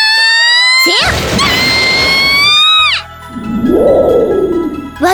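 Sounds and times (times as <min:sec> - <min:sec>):
high wavering screams: 0:00.2 - 0:05.0.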